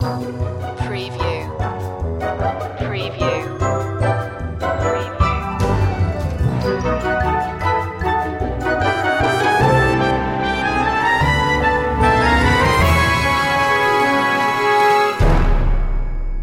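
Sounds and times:
nostalgic TV audio: 0.0 - 15.7.

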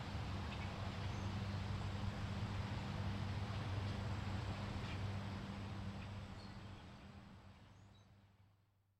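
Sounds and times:
suburban lawn mower by day: 0.0 - 6.0.

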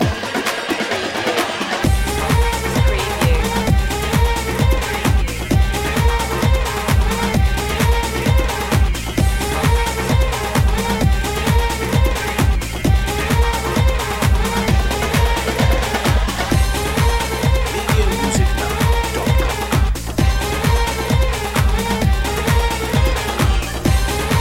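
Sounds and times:
music beat: 0.0 - 24.3.

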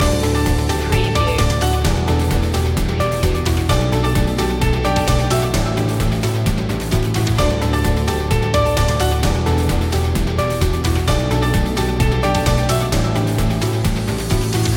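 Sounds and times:
corporate technology music loop: 0.0 - 14.7.

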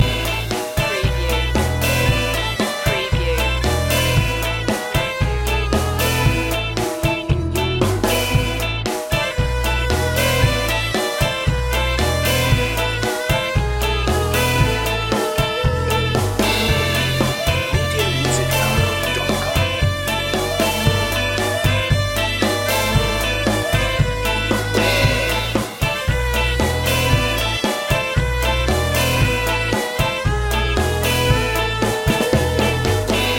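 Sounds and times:
ska loop: 0.0 - 33.3.

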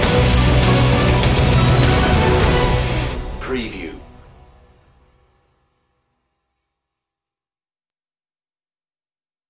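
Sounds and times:
heroic anthem rock mix: 0.0 - 4.9.

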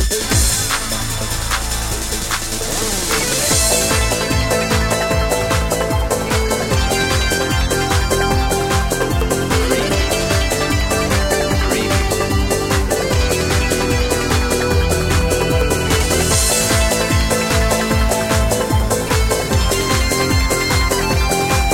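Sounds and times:
lead guitar: 0.2 - 21.7.

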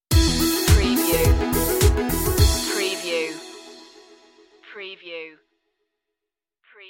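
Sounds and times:
music stinger: 0.1 - 4.6.

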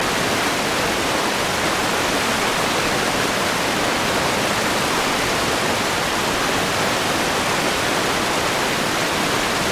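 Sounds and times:
water flowing over river rapids: 0.0 - 9.7.

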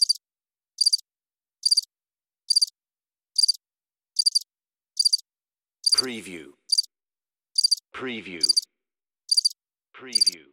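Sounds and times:
cricket chirping: 0.0 - 0.2, 0.8 - 1.0, 1.6 - 1.9, 2.5 - 2.7, 3.4 - 3.6, 4.2 - 4.4, 5.0 - 5.2, 6.7 - 6.9, 7.6 - 7.8, 8.4 - 8.6, 9.3 - 9.6
speech: 6.0 - 6.6, 8.0 - 8.6, 10.0 - 10.5.

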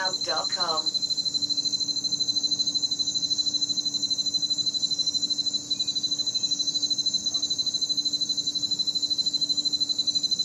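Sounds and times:
crickets chirping: 0.0 - 10.4.

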